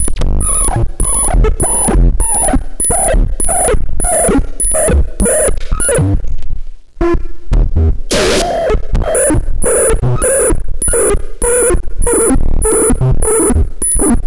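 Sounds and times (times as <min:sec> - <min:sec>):
audio feedback: 0:00.0 - 0:06.0, 0:08.1 - 0:14.1.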